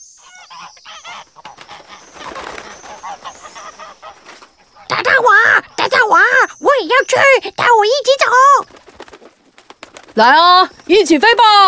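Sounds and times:
white domestic goose honking excitedly: 0.2s - 6.6s
speech: 7.1s - 8.8s, 10.2s - 11.6s.

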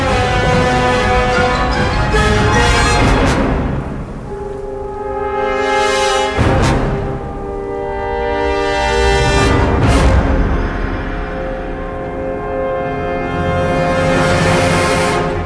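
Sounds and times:
epic music of long held chords: 0.0s - 15.4s.

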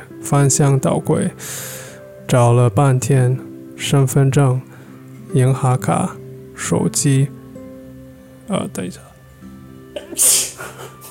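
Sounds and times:
speech: 0.2s - 4.7s, 5.3s - 7.4s, 8.5s - 9.1s, 10.2s - 10.4s
person sneezing: 10.0s - 11.0s.

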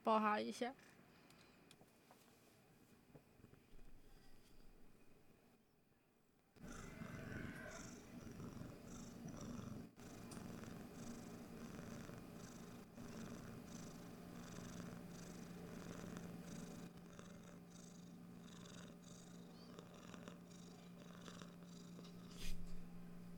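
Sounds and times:
speech: 0.0s - 1.0s
cat purring: 6.6s - 23.2s.

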